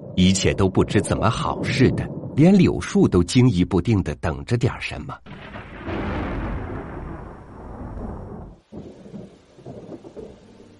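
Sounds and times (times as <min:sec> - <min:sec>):
thunder rumbling: 0:00.0 - 0:02.9, 0:05.2 - 0:10.7
rain pattering: 0:00.0 - 0:10.7
speech: 0:00.2 - 0:05.5.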